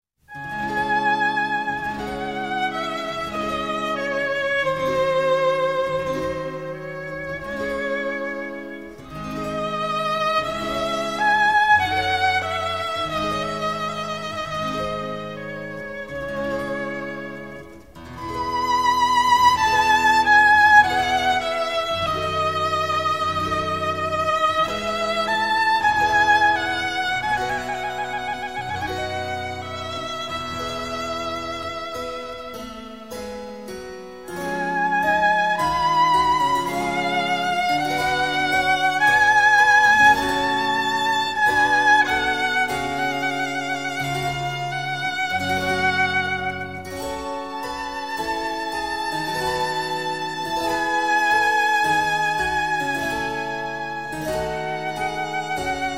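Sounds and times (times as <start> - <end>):
violin sonata in E, largo: 0.2 - 55.9.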